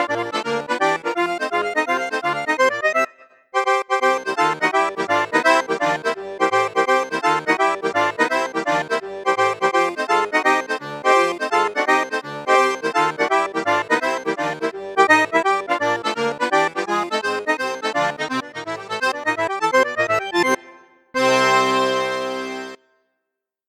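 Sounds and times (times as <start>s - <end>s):
accordion with bassoon flute and piccolo registers: 0.0s - 23.0s.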